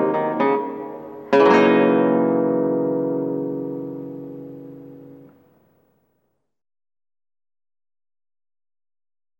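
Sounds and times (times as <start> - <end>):
Venezuelan merengue music: 0.0 - 5.3.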